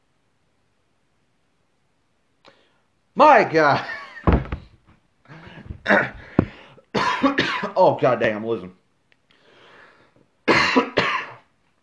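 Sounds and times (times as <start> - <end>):
speech: 3.2 - 4.0, 5.8 - 6.2, 7.3 - 8.8
person coughing after water went down the wrong pipe: 5.8 - 7.8, 10.5 - 11.5.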